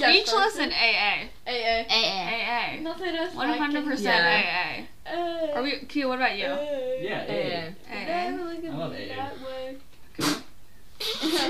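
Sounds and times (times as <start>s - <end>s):
speech: 0.0s - 10.4s, 11.2s - 11.4s
person sneezing: 10.2s - 11.4s.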